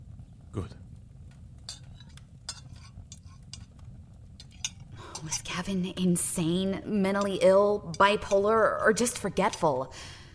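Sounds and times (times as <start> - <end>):
low steady rumble: 0.0 - 10.3
speech: 0.5 - 0.8, 5.3 - 10.2
knife and cutlery clinking and scraping: 1.7 - 3.8, 4.4 - 5.4.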